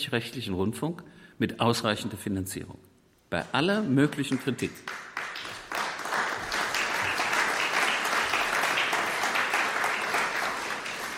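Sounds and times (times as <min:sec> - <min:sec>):
speech: 0:00.0 - 0:05.1
audience applause: 0:04.8 - 0:11.1.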